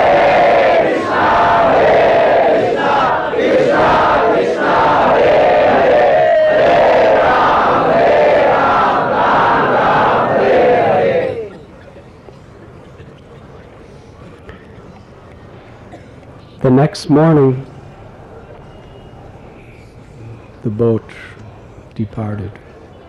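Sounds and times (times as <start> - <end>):
large crowd chanting in unison: 0.0 - 11.7
speech: 16.9 - 17.7, 20.6 - 21.3, 22.0 - 22.6.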